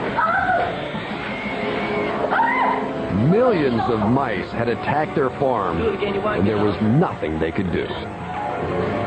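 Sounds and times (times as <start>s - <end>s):
pigs screeching: 0.2s - 2.9s
speech: 3.4s - 8.9s.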